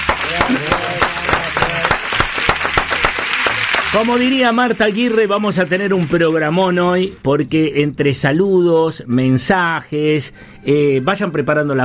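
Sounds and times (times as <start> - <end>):
audience applause for live musicians: 0.0 - 6.6
speech: 3.9 - 11.8.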